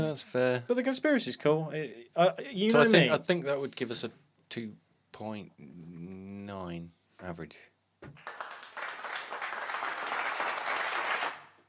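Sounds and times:
speech: 0.0 - 8.4
applause: 8.2 - 11.6.

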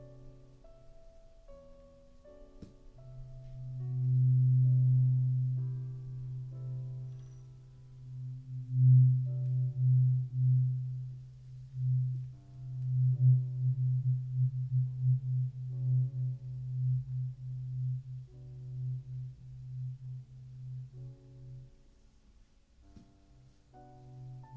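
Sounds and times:
low ringing hum of traditional Chinese ear cleaning: 3.0 - 22.0.

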